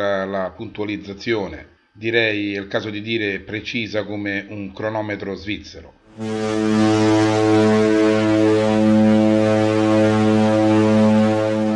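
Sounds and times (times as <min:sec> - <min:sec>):
speech: 0:00.0 - 0:07.6
ship's horn blast: 0:06.1 - 0:11.7.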